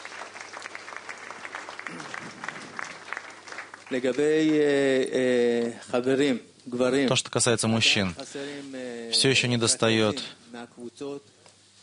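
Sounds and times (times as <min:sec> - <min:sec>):
audience applause: 0:00.0 - 0:04.8
speech: 0:03.9 - 0:11.8.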